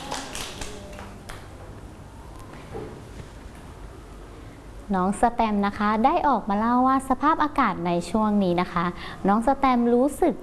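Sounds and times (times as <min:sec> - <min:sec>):
children clapping: 0:00.0 - 0:01.5
speech: 0:04.9 - 0:10.4.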